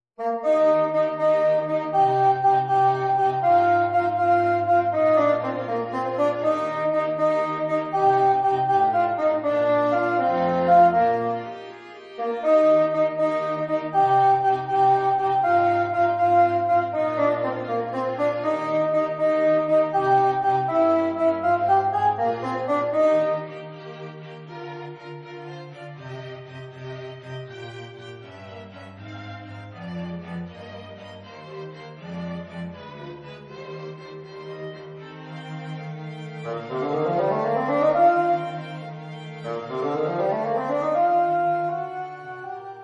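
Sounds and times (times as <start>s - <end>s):
quartet playing: 0.2s - 24.3s, 35.9s - 42.8s.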